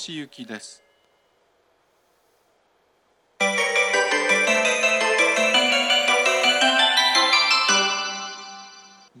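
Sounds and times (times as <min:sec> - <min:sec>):
melody: 0:03.4 - 0:09.1.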